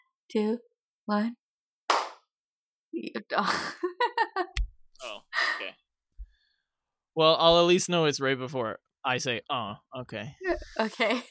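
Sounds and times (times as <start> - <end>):
speech: 0.3 - 1.4, 3.0 - 5.8, 7.2 - 11.2
hand clap: 1.9 - 2.3.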